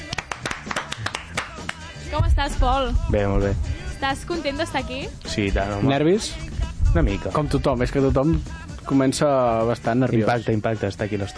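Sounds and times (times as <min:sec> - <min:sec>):
studio clapping: 0:00.0 - 0:02.0
speech: 0:02.1 - 0:11.3.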